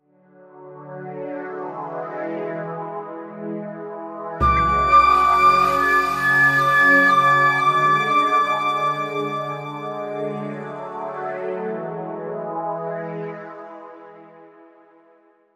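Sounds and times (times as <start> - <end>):
trance music: 4.4 - 11.2.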